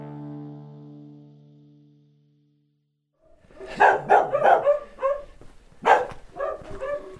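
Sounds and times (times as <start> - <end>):
village dogs barking: 3.5 - 7.1.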